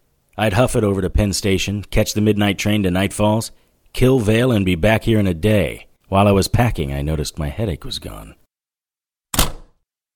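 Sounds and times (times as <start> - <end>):
speech: 0.4 - 8.4
apartment door closing: 9.3 - 9.8.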